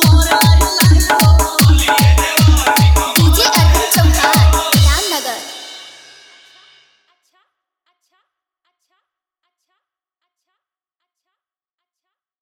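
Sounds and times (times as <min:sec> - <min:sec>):
hard bass music mix: 0:00.0 - 0:05.5.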